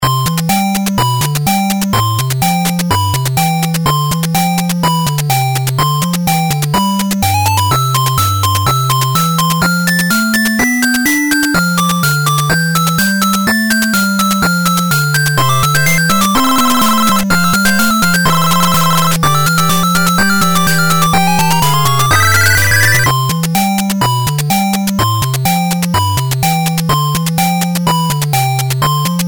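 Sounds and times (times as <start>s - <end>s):
chiptune music: 0.0s - 29.2s.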